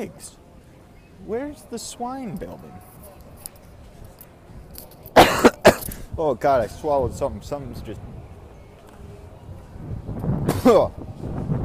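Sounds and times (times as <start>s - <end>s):
speech: 0.0s - 0.4s, 1.2s - 3.0s, 6.2s - 8.1s, 10.6s - 11.1s
wind buffeting the microphone: 5.9s - 11.6s.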